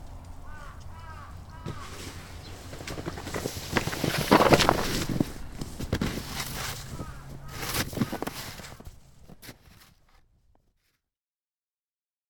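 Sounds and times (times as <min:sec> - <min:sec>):
snow blower running: 0:01.7 - 0:09.8.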